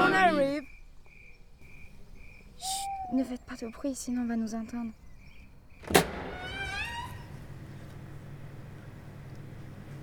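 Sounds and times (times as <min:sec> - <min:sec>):
speech: 0:03.1 - 0:05.0
window shutter banging outside: 0:05.8 - 0:08.1
shutter creaking as it swings: 0:05.8 - 0:08.8.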